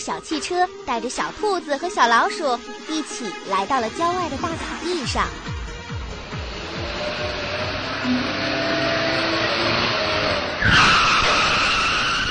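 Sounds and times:
speech: 0.0s - 5.5s
motorcycle skidding to a stop: 6.0s - 12.2s.

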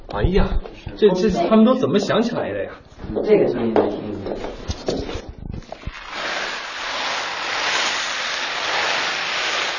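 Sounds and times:
speech: 0.2s - 4.4s
rain sound effect made by rolling soybeans in a basket: 5.9s - 9.7s.

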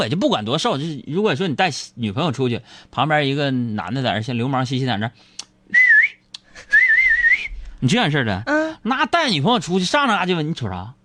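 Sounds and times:
speech: 0.0s - 5.8s, 7.8s - 11.0s
flirtatious wolf whistles from a person: 5.7s - 7.7s.

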